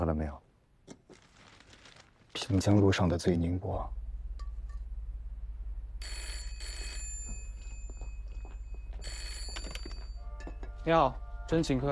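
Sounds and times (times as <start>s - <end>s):
speech: 0.0s - 0.4s, 2.4s - 4.0s, 10.8s - 11.8s
telephone ringing: 6.0s - 10.6s.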